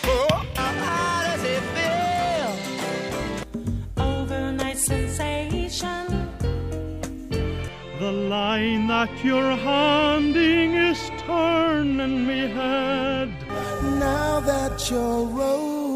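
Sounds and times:
Irish country folk music: 0.1s - 15.8s.

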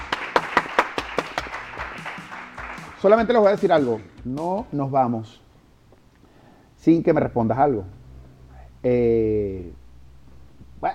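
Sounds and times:
audience applause: 0.0s - 3.2s
speech: 3.0s - 5.4s, 6.8s - 8.0s, 8.8s - 9.8s.

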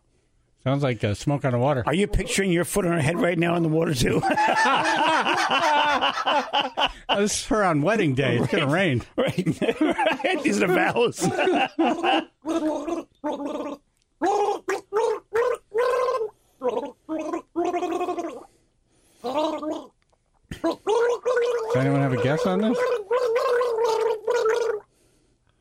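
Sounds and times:
speech: 0.6s - 14.5s
laughter: 4.0s - 7.4s, 8.2s - 12.3s
woman gargling: 11.3s - 18.4s, 20.5s - 24.8s.

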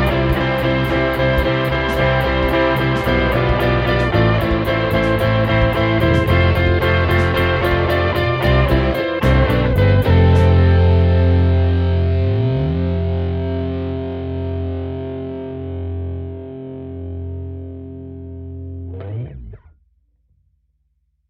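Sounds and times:
rock piece in four-four time: 0.0s - 16.2s.

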